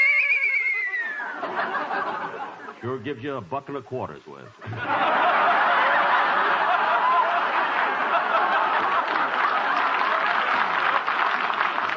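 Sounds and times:
horse hitched to a wagon whinnying: 0.0 - 1.3
laughter: 1.1 - 2.9, 4.6 - 11.9
speech: 2.8 - 5.0.

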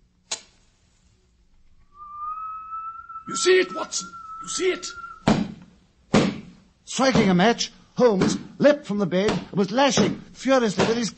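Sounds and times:
low clear whistle: 1.7 - 5.5
speech: 3.3 - 5.0, 6.9 - 11.1.

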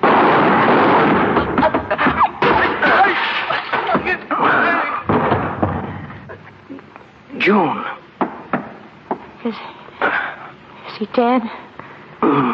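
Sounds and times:
gunshots: 0.0 - 5.9
continuous rumbling noise: 0.0 - 6.6
speech: 7.4 - 7.8, 9.5 - 9.7, 11.0 - 11.6.

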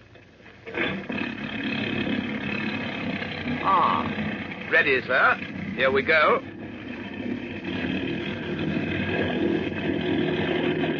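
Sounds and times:
motorboat engine on the Mary Ann starting: 0.0 - 10.9
speech: 4.7 - 6.5.

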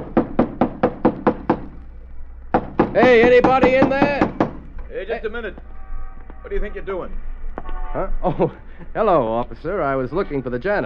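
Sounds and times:
knocking on the stage door of an old theater: 0.0 - 1.7, 2.5 - 4.6
speech: 2.9 - 4.2, 4.9 - 5.7, 6.4 - 7.3, 7.9 - 10.8
laughter: 8.2 - 9.0.

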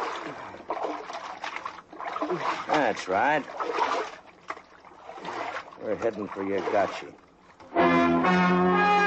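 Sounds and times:
paddle splashing in water pulling a boat: 0.0 - 7.8
speech: 2.3 - 4.2, 5.8 - 7.2, 7.8 - 8.9.

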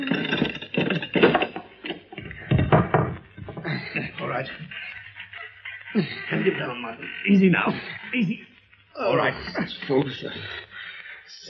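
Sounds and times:
wooden trap door being hauled open: 0.0 - 4.4
laughter: 0.0 - 11.4
speech: 6.0 - 10.7, 11.3 - 11.4.

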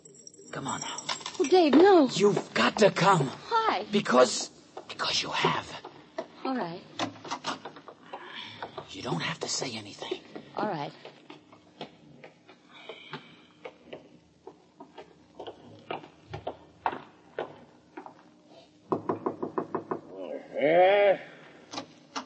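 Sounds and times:
speech: 0.5 - 5.8, 6.5 - 7.0, 8.9 - 11.1
knocking on the front door: 18.9 - 20.1
bleat-like cry: 20.3 - 21.4.

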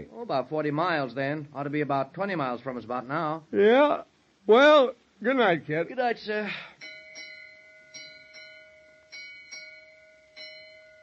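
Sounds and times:
speech: 0.1 - 7.0
three-bell lookout warning on a ship: 6.8 - 11.0.

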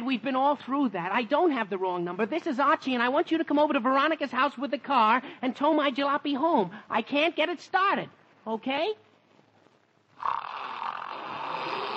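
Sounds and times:
speech: 0.1 - 9.1
man snoring while asleep: 10.2 - 11.9.

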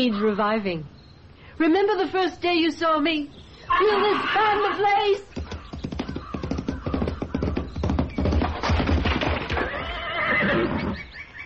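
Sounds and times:
speech: 0.0 - 1.0, 1.6 - 5.3
horse whinnying: 3.7 - 7.8, 9.4 - 11.1
hoofbeats clattering on a hard surface: 5.2 - 10.0.

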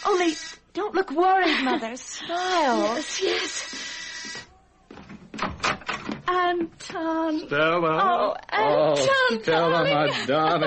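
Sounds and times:
speech: 0.0 - 3.9, 6.3 - 10.6
door being opened: 4.3 - 6.4
laughter: 8.9 - 10.6.

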